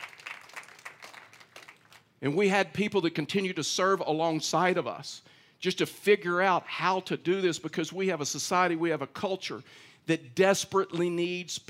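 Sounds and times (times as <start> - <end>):
audience clapping: 0.0 - 2.2
speech: 2.2 - 11.6.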